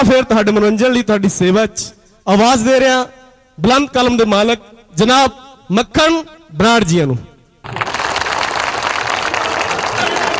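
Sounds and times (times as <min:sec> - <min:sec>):
speech: 0:00.0 - 0:07.9
audience applause welcoming a Punjabi poet and singer at a live show: 0:07.6 - 0:10.3.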